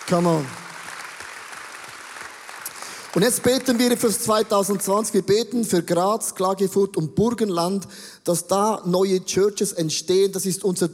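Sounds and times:
audience applause: 0.0 - 4.8
speech: 0.1 - 0.6, 3.1 - 10.9.

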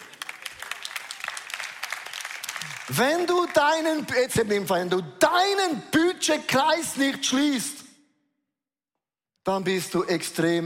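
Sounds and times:
audience applause: 0.0 - 3.8
speech: 2.9 - 7.8, 9.5 - 10.6.

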